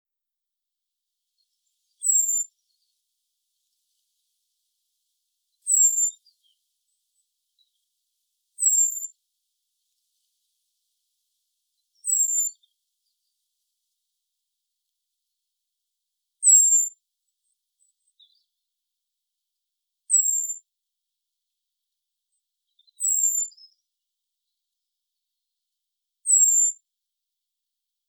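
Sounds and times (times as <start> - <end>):
common blackbird thin whistle call: 1.4 - 2.9, 5.6 - 6.6, 8.6 - 9.2, 11.8 - 12.7, 16.4 - 17.0, 20.1 - 20.6, 22.7 - 23.8, 26.3 - 26.8.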